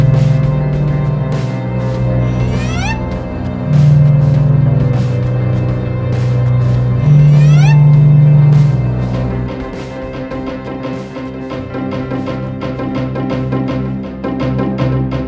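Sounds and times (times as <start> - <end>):
sea: 0.0 - 9.5
music: 0.0 - 15.2.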